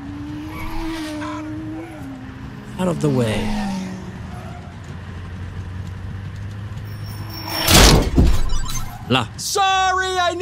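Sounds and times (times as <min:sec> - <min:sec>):
racing engines of cars and motorbikes speeding past at the Misano Grand Prix: 0:00.0 - 0:07.6
speech: 0:02.8 - 0:03.7, 0:09.1 - 0:10.4.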